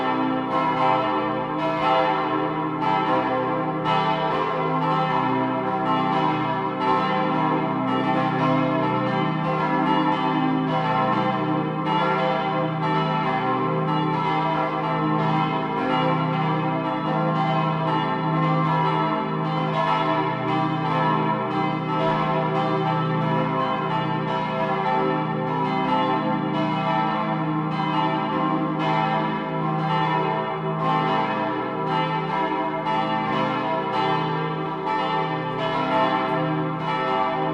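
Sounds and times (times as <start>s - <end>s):
full peal of church bells of a minster: 0.0s - 37.5s.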